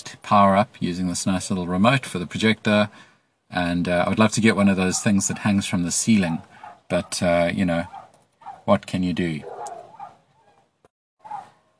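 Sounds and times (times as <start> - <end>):
speech: 0.3 - 8.0, 8.7 - 9.6
dogs barking: 4.9 - 5.4, 6.4 - 7.2, 7.8 - 8.7, 9.4 - 10.6, 11.2 - 11.6.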